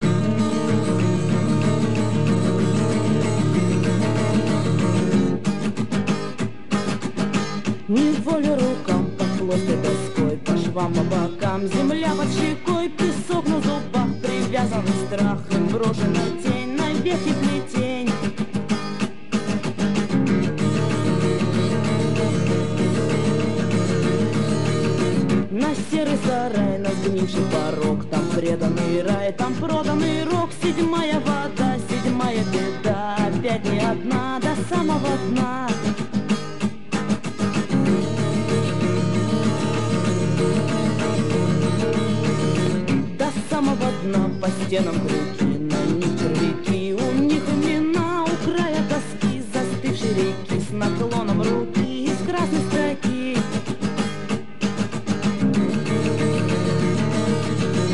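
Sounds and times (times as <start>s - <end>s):
reggae music: 0.0s - 57.9s.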